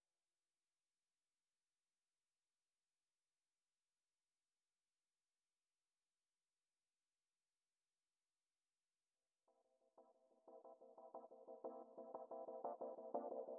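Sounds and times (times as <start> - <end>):
keys: 10.0 - 13.5.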